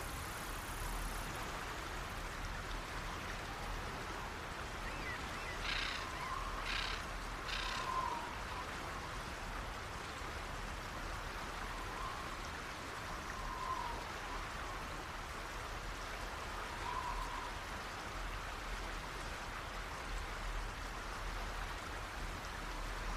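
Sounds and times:
constant soft hiss of nature ambience: 0:00.0 - 0:23.1
faint calls: 0:05.0 - 0:08.6.

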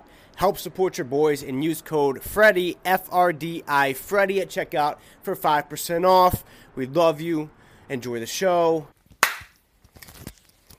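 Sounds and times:
speech: 0:00.4 - 0:09.0
single sharp hand clap: 0:09.2 - 0:09.6.

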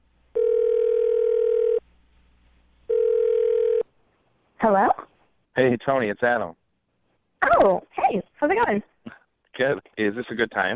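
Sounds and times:
telephone dial tone: 0:00.4 - 0:01.8, 0:02.9 - 0:03.9
speech: 0:05.6 - 0:06.6, 0:07.6 - 0:08.9, 0:09.6 - 0:10.7.

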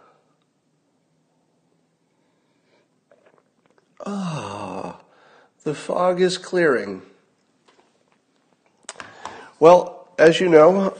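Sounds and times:
sipping coffee from a mug: 0:02.7 - 0:05.1
speech: 0:05.6 - 0:07.1, 0:09.6 - 0:10.9.

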